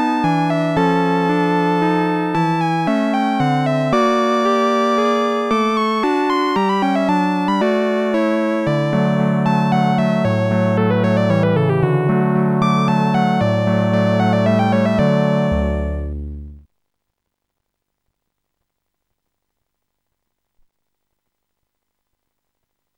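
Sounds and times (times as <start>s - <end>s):
minuet: 0.0s - 16.6s.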